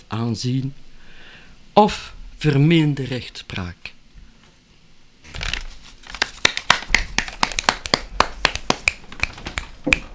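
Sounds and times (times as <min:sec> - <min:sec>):
speech: 0:00.1 - 0:00.9, 0:01.8 - 0:04.0
people snapping fingers as applause: 0:06.2 - 0:10.1.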